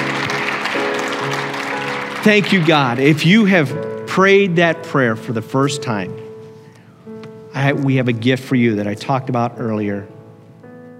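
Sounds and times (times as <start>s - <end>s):
audience cheering and applauding: 0.0s - 3.3s
speech: 2.2s - 6.2s, 7.6s - 10.2s.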